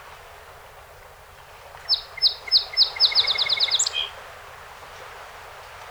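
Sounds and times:
background hiss: 1.9 - 4.2
song sparrow song: 1.9 - 4.2.

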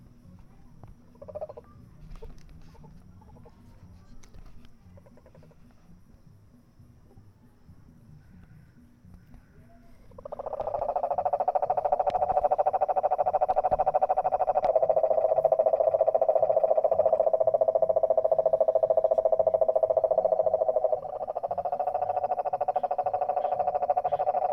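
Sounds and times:
cane toads trilling in San Jose, Costa Rica: 1.1 - 1.6, 4.9 - 5.6, 8.2 - 24.5.

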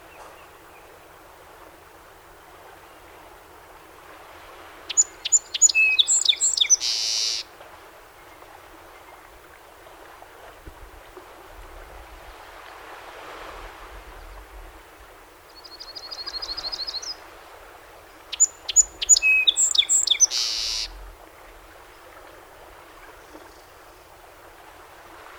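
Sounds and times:
song sparrow singing: 4.9 - 7.4, 15.6 - 17.2, 18.3 - 20.9.

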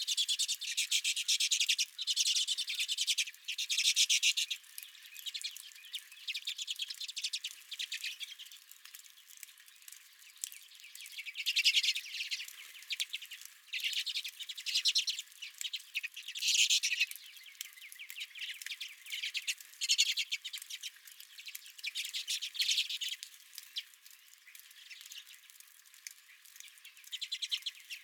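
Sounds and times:
flock of redpolls twittering: 0.1 - 8.5, 10.6 - 23.2, 26.6 - 28.0.

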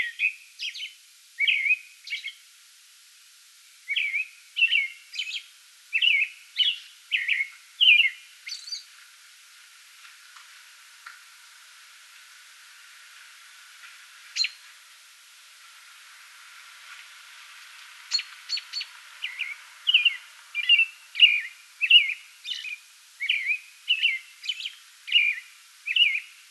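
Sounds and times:
American robin singing caroling phrases: 0.0 - 2.4, 3.8 - 8.9, 14.4 - 14.6, 18.1 - 26.4.

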